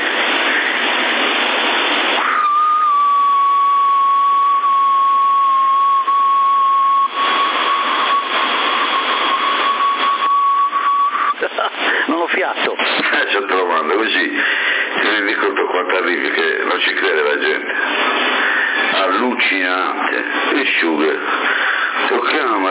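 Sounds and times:
rushing noise: 0:00.0 - 0:04.8, 0:06.8 - 0:22.4
continuous hiss: 0:00.0 - 0:22.6
person whistling: 0:02.3 - 0:08.3, 0:09.3 - 0:11.4.

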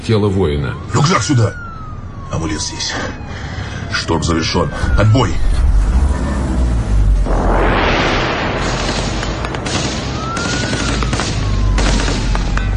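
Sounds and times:
speech: 0:00.0 - 0:01.6, 0:02.3 - 0:05.6
whooshing sweep: 0:04.8 - 0:09.7
sharp gunshots: 0:07.3 - 0:12.7
automatic gunfire: 0:08.6 - 0:12.7.

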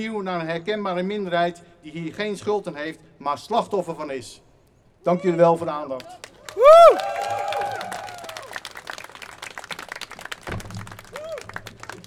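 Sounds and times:
speech: 0:00.0 - 0:07.5
audience applause: 0:06.0 - 0:12.0.

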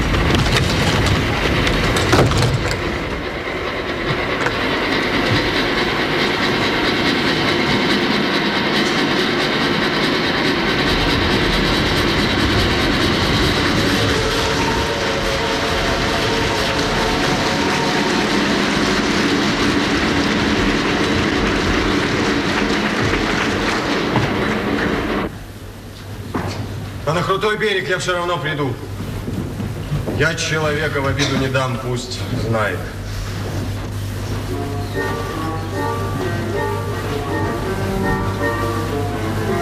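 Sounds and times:
departing train clattering along rails at a platform: 0:00.0 - 0:25.6, 0:26.6 - 0:39.6
speech: 0:27.4 - 0:28.9, 0:30.2 - 0:33.0.

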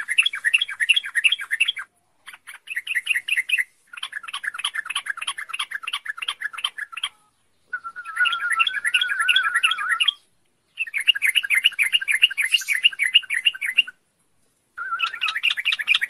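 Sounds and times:
songbird twittering: 0:00.0 - 0:14.0, 0:14.8 - 0:16.0.

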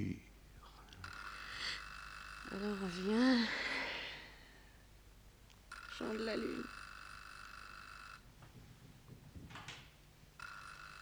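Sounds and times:
telephone ringing unanswered with a buzzing electronic tone: 0:01.1 - 0:04.5, 0:05.7 - 0:08.3, 0:10.4 - 0:11.0
speech: 0:02.5 - 0:03.7, 0:06.0 - 0:06.8
soft rustling and knocking: 0:08.3 - 0:10.2.

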